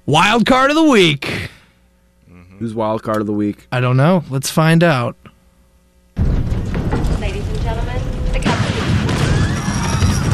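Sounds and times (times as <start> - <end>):
speech: 0.1 - 1.3, 2.6 - 5.3
plane crash sound effect: 6.2 - 10.3.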